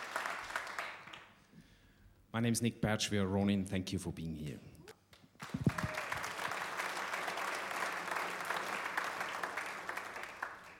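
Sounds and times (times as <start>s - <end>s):
audience applause after live concert: 0.0s - 1.3s, 5.4s - 10.7s
speech: 2.3s - 4.8s.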